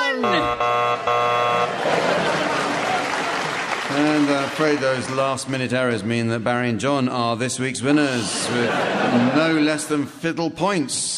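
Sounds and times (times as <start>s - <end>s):
game clock time's-up signal: 0.0s - 1.7s
laughter: 1.4s - 5.1s, 7.8s - 10.0s
speech: 4.0s - 11.1s.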